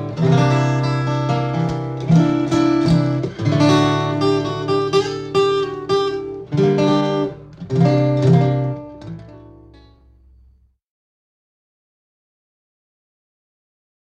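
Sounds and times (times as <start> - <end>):
acoustic guitar: 0.0 - 10.6.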